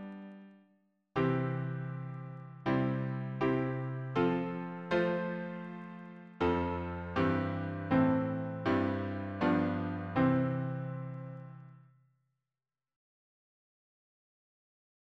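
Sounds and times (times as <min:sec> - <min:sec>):
piano harmony: 0:00.0 - 0:00.5, 0:01.2 - 0:11.8.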